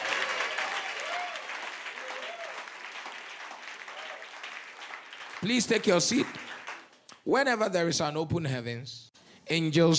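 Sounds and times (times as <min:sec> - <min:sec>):
crowd clapping hands: 0:00.0 - 0:07.3
speech: 0:05.4 - 0:06.4, 0:07.3 - 0:09.9.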